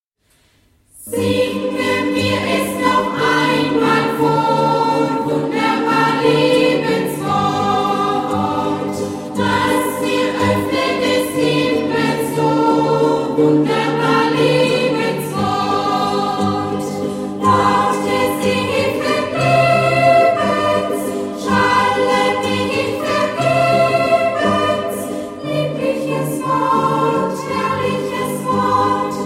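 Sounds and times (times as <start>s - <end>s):
guitar ensemble: 1.1s - 29.2s.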